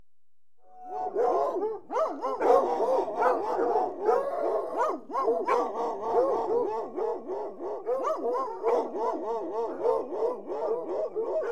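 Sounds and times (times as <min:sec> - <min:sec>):
hunting hounds barking: 0:00.8 - 0:11.4.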